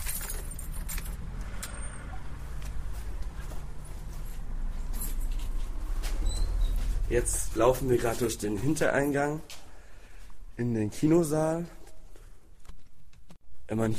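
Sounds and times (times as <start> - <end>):
keys jangling and scraping in a door lock: 0.0 - 1.8, 4.8 - 6.4
traffic rumble: 0.0 - 12.1
speech: 7.1 - 9.6, 10.6 - 11.8, 13.7 - 13.9.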